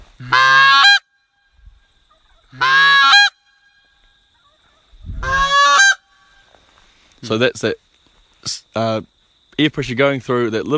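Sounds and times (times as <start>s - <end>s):
reed goose call honking: 0.2s - 1.1s, 2.1s - 3.8s, 5.2s - 6.4s
speech: 7.2s - 7.8s, 8.4s - 10.7s.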